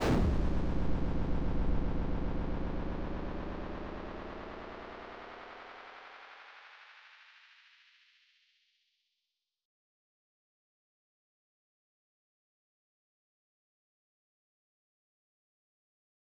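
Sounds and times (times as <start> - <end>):
noise shot: 0.0 - 5.7.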